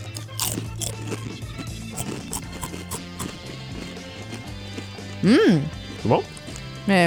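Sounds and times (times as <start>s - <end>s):
crunching bites into a lime-flavoured snack: 0.0s - 1.3s, 1.9s - 3.4s
speech: 5.2s - 7.0s.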